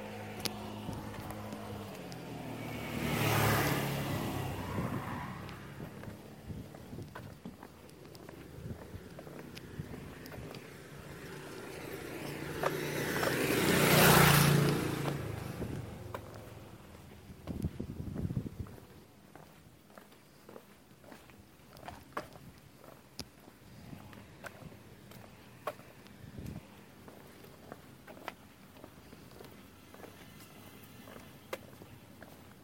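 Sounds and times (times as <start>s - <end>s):
vehicles passing on a street in Taormina, Sicily: 0.0s - 19.6s, 21.7s - 32.6s
footsteps: 0.1s - 2.6s, 3.3s - 32.6s.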